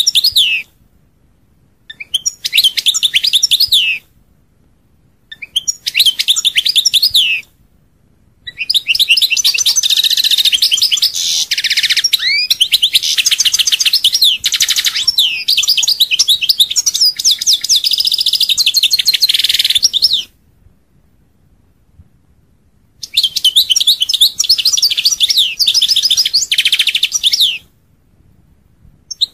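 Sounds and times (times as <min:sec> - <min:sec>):
European goldfinch song: 0:00.0 - 0:00.7, 0:01.9 - 0:04.0, 0:05.3 - 0:07.5, 0:08.4 - 0:20.3, 0:23.0 - 0:27.7.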